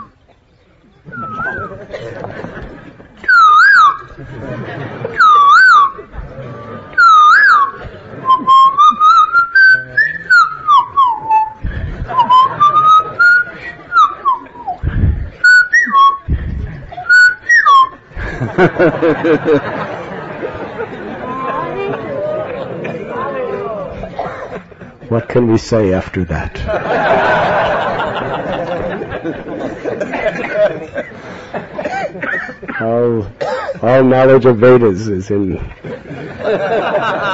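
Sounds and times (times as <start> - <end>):
laughter: 0.0 - 34.0, 35.6 - 37.3
noisy murmuring: 0.0 - 37.3
whistled imitation of a cuckoo's song: 1.1 - 1.8, 3.2 - 4.2, 5.2 - 6.1, 7.0 - 18.6
speech: 18.8 - 19.7, 25.3 - 28.4, 32.8 - 35.9, 36.5 - 37.3.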